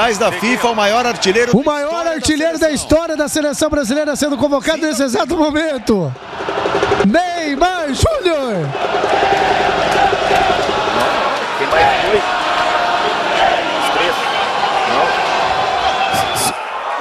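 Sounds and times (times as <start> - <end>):
speech: 0.0 - 11.1
stadium crowd cheering: 0.0 - 16.9
people shouting: 8.7 - 16.9
sharp claps: 9.1 - 12.7.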